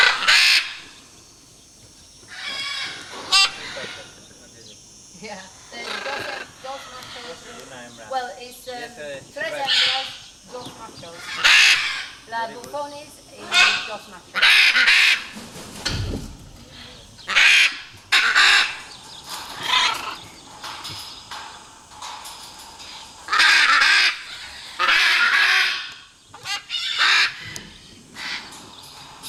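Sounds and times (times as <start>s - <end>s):
Great green macaw Ara ambigua harsh squawks and honking calls: 0.0s - 1.0s, 2.3s - 4.2s, 5.7s - 7.7s, 9.5s - 10.3s, 11.1s - 12.4s, 13.4s - 15.4s, 16.8s - 20.3s, 23.3s - 28.6s.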